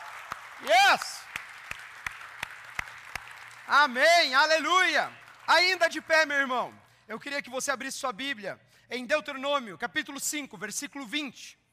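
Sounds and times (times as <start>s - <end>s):
audience applause: 0.0s - 6.3s
speech: 3.7s - 11.6s.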